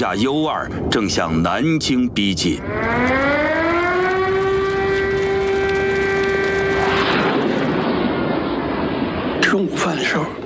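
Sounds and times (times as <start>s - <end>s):
speech: 0.0s - 3.6s, 9.6s - 10.4s
air raid siren wailing: 2.6s - 9.4s.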